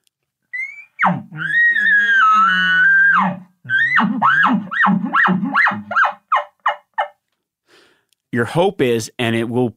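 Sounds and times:
imitated bull elk bugle: 0:00.5 - 0:07.2
speech: 0:08.4 - 0:09.7.

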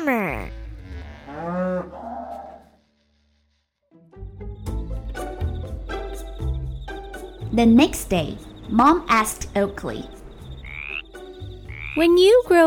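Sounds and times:
cow mooing: 0:00.8 - 0:02.6
speech: 0:07.5 - 0:10.2, 0:12.0 - 0:12.6.

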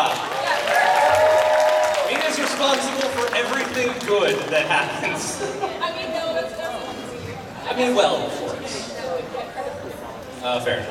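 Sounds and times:
audience applause for a comedian at a live event: 0:00.0 - 0:05.1
cheering voices: 0:00.1 - 0:03.2
speech: 0:04.0 - 0:05.9, 0:07.7 - 0:08.8, 0:10.4 - 0:10.8.

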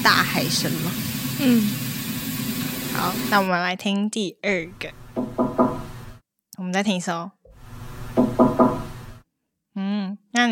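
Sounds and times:
speech: 0:00.4 - 0:01.9, 0:03.0 - 0:05.0, 0:06.7 - 0:07.4, 0:09.8 - 0:10.5
knocking on a door: 0:05.1 - 0:06.0, 0:08.1 - 0:09.2.

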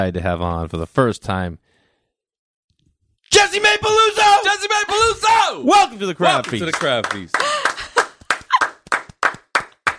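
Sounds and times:
speech: 0:00.0 - 0:01.7, 0:03.3 - 0:07.4
person shouting: 0:03.3 - 0:06.5
hosts clapping hands in a little cheer: 0:06.3 - 0:09.9.

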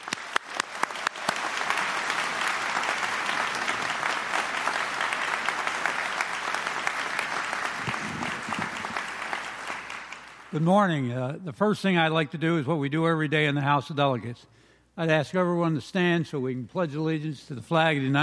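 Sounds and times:
audience applause at a county executive inauguration in Anne Arundel County: 0:00.0 - 0:10.6
speech: 0:10.6 - 0:18.2.

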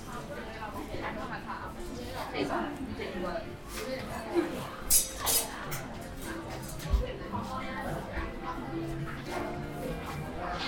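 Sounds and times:
people chattering in a hutong: 0:00.0 - 0:10.6.

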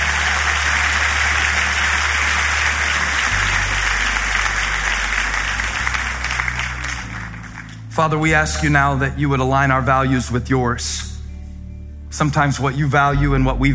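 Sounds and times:
audience clapping hands: 0:00.0 - 0:08.2
speech: 0:08.0 - 0:11.1, 0:12.1 - 0:13.7.

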